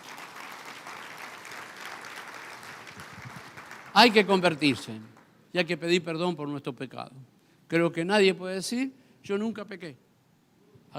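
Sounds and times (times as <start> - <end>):
audience applauding: 0.0 - 5.3
speech: 4.0 - 10.0.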